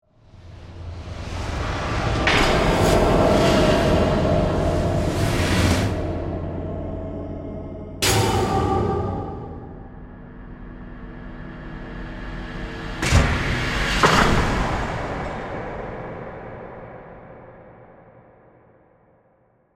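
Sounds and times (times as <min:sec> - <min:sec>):
ghostly haunting horror composition with swells: 0:00.2 - 0:18.9.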